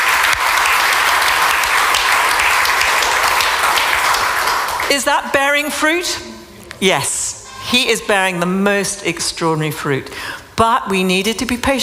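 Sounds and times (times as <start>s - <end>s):
audience clapping: 0.0s - 5.6s
speech: 4.9s - 11.8s.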